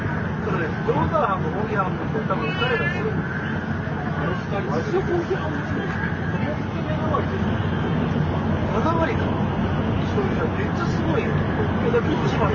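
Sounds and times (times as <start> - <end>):
N700 series Shinkansen running between Kyoto and Shin-Yokohama: 0.0 - 12.5.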